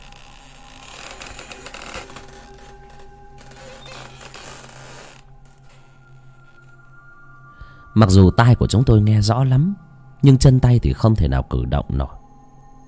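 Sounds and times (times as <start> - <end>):
creaking sliding door being dragged open: 0.0 - 6.7
speech: 8.0 - 12.2.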